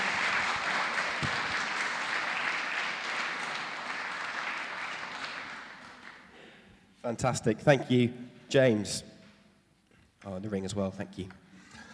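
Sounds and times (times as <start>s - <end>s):
audience applause: 0.0s - 6.3s
speech: 7.0s - 9.1s, 10.2s - 11.4s.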